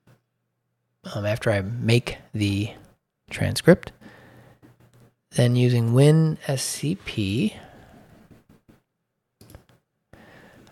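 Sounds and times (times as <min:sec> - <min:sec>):
speech: 0:01.1 - 0:04.0, 0:05.3 - 0:07.7
computer mouse clicks: 0:09.4 - 0:09.8.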